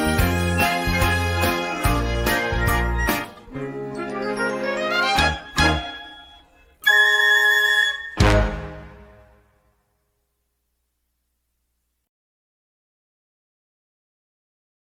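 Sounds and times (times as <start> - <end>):
music accompaniment: 0.0 - 9.6.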